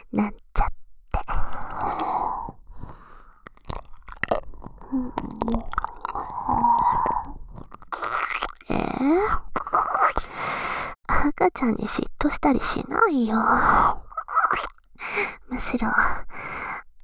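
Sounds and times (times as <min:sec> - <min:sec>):
speech: 0:00.1 - 0:00.7, 0:11.6 - 0:14.7, 0:15.6 - 0:16.2
wet ear licking and slurping mouth sounds: 0:01.2 - 0:10.4
breathy moans: 0:04.7 - 0:10.4.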